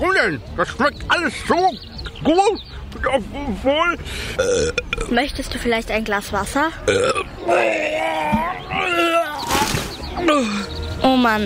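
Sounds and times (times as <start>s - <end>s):
speech: 0.0s - 8.4s, 10.2s - 11.4s
person vomiting: 4.4s - 5.0s, 6.9s - 9.4s.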